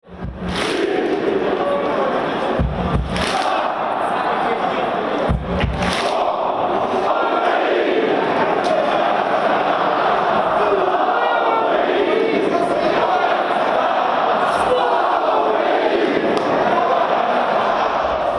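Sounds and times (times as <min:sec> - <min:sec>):
stadium crowd at Ukraine national team match at Donbas Arena: 0:00.0 - 0:18.3.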